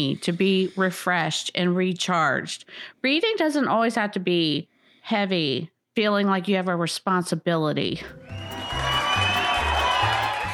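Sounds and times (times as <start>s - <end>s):
speech: 0.0s - 8.2s
crowd cheering: 8.1s - 10.5s.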